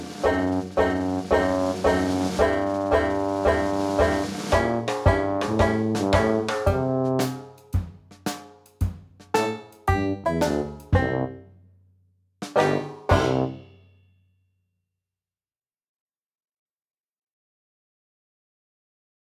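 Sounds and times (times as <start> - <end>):
slow Dixieland backing music: 0.0 - 7.6, 9.3 - 11.4, 12.4 - 13.8.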